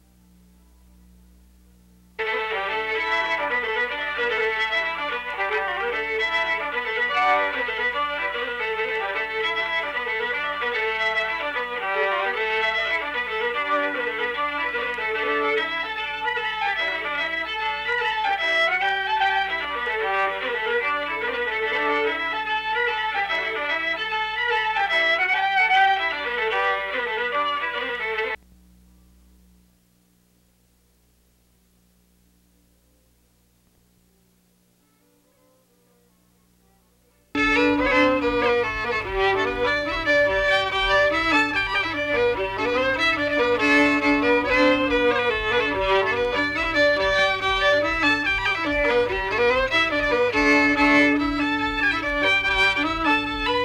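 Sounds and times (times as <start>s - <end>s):
polka music: 2.2s - 28.4s, 37.4s - 53.6s.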